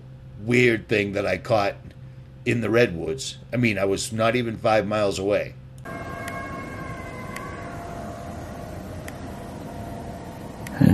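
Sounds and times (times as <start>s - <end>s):
speech: 0.4s - 6.0s
coyotes or wolves howling: 5.9s - 10.9s.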